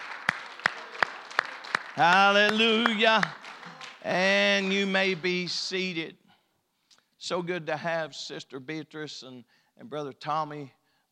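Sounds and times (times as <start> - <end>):
audience hand clapping: 0.0 - 5.4
speech: 2.0 - 6.2, 7.2 - 11.1.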